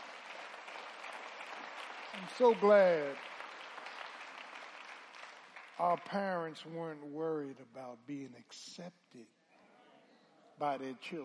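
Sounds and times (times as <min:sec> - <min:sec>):
audience applause: 0:00.0 - 0:06.2
speech: 0:02.1 - 0:03.3, 0:05.8 - 0:09.4, 0:10.6 - 0:11.2.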